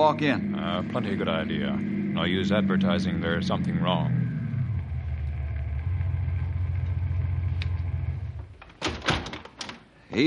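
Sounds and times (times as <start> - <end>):
speech: 0.1 - 4.3
car slowing and coasting to a stop: 3.6 - 8.6.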